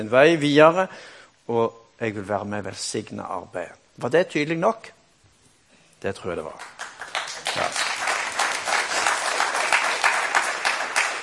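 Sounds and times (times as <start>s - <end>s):
speech: 0.0s - 5.0s, 6.0s - 6.8s
crowd applause: 6.8s - 11.2s.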